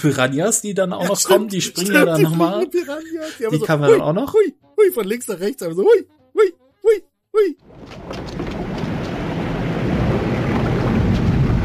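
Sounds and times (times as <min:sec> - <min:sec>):
speech: 0:00.0 - 0:08.3
laughter: 0:01.0 - 0:04.5
rushing water: 0:07.7 - 0:11.6.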